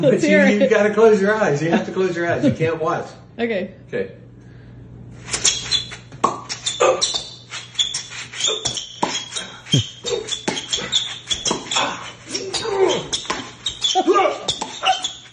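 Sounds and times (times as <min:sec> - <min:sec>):
speech: 0:00.0 - 0:04.2
voice imitating televised tennis with squeaking shoes: 0:05.4 - 0:15.3.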